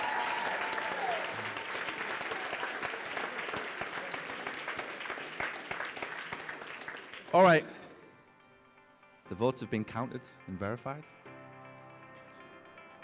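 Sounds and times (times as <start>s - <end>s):
audience applause: 0.0s - 7.3s
speech: 7.3s - 7.8s, 9.3s - 11.2s.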